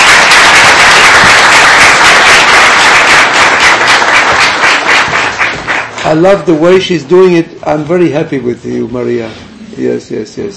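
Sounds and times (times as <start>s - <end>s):
crowd applauding: 0.0s - 6.5s
speech: 6.1s - 10.5s.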